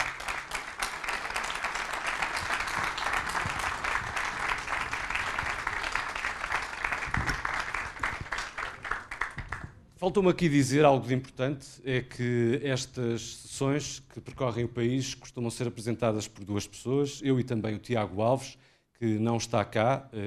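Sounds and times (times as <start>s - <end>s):
audience applause: 0.0s - 9.7s
speech: 10.0s - 20.2s.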